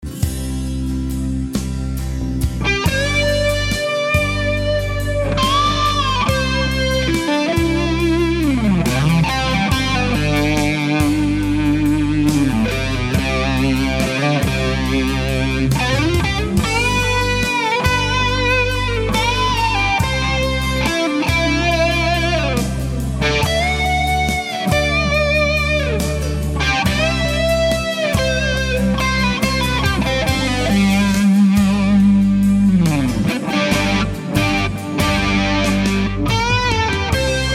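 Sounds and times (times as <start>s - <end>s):
Ram's Head Big Muff distorted guitar: 0.0s - 37.5s.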